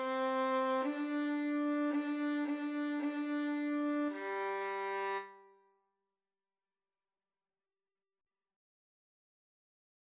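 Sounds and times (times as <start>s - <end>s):
wedding march on violin: 0.0s - 5.2s.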